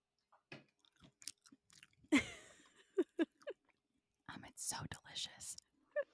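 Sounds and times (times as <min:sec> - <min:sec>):
Goldfish crackers crunching between teeth during a mukbang: 0:00.8 - 0:02.1
speech: 0:04.7 - 0:05.7.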